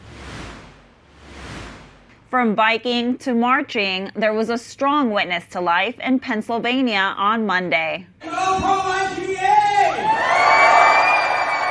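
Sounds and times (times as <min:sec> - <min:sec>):
speech: 0:02.3 - 0:09.2
rally crowd cheering: 0:08.2 - 0:11.6.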